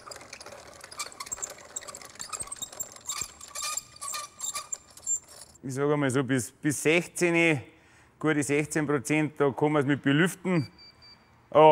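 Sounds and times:
small mill grinding wheat for a moisture test: 0:00.0 - 0:05.6
speech: 0:05.6 - 0:10.8.

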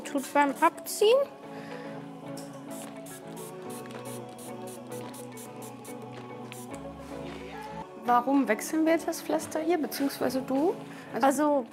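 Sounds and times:
speech: 0:00.1 - 0:01.4, 0:08.1 - 0:11.7
adhesive remover spray bursts onto a plaster: 0:02.7 - 0:06.8.

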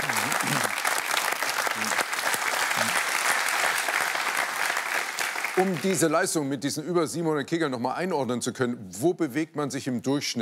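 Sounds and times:
audience applause: 0:00.0 - 0:06.2
speech: 0:05.6 - 0:10.4.

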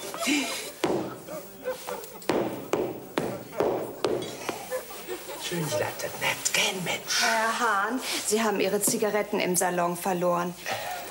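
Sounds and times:
laughter: 0:00.0 - 0:06.2
speech: 0:00.3 - 0:00.6, 0:05.5 - 0:10.9
hammer knocks: 0:00.8 - 0:01.4, 0:02.3 - 0:04.8.

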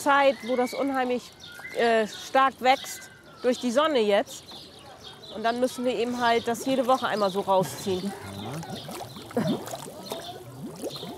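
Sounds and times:
speech: 0:00.0 - 0:04.7, 0:05.3 - 0:09.8
algae-clogged water pump bubbling: 0:06.4 - 0:11.1.

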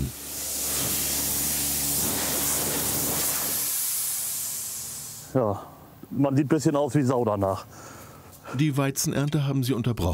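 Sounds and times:
compressed air blowing dust off a combine harvester: 0:00.0 - 0:06.0
speech: 0:05.3 - 0:10.1.

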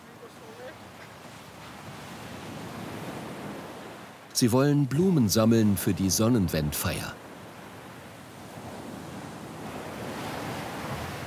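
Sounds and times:
strong wind on Baltic coast: 0:00.0 - 0:04.2, 0:07.2 - 0:11.2
surf on Baltic coast: 0:00.0 - 0:11.2
speech: 0:04.4 - 0:07.2.

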